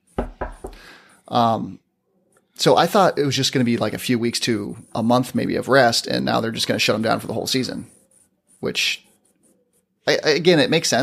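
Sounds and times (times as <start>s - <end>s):
knocking on wood: 0.2s - 0.8s
speech: 0.8s - 1.8s, 2.6s - 8.0s, 8.6s - 9.1s, 10.0s - 11.0s.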